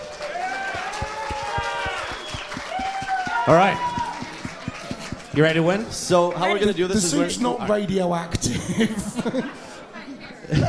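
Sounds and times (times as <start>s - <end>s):
whoops and cheers: 0.0s - 4.4s
crowd clapping: 0.0s - 6.1s
dull low thumps: 1.0s - 6.1s
speech: 3.4s - 3.9s, 5.4s - 9.6s
laughter: 6.9s - 10.6s.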